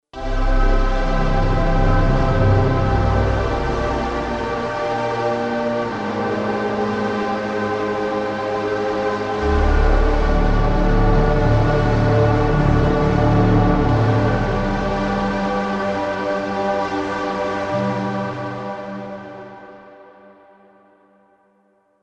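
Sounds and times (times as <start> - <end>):
synth pad: 0.2 - 19.9.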